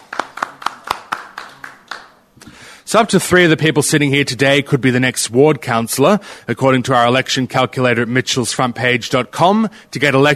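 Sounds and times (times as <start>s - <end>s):
clapping welcoming a panel at an election forum: 0.0s - 2.2s
speech: 2.9s - 10.3s.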